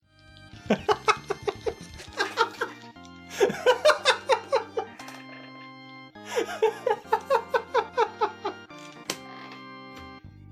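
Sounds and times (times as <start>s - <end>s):
person laughing: 0.6s - 8.7s.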